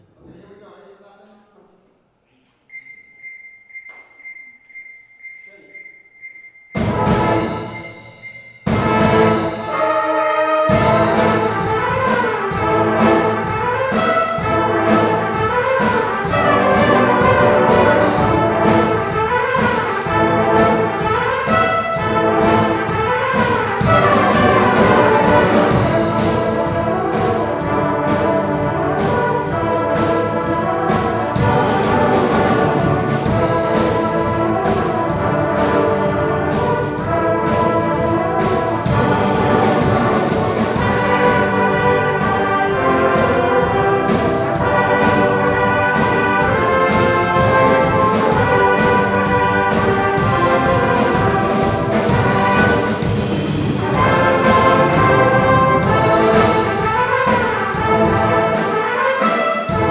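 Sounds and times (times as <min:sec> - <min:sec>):
brass instruments: 0:05.5 - 0:59.8.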